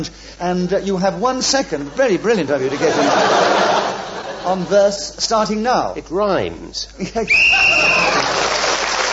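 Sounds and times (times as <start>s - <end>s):
speech: 0.0s - 8.4s
laughter: 1.8s - 4.9s, 7.0s - 9.0s
game show whistle: 7.3s - 8.3s.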